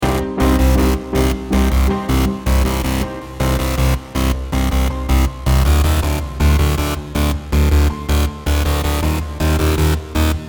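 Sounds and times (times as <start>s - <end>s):
bass drop: 0.0s - 10.4s.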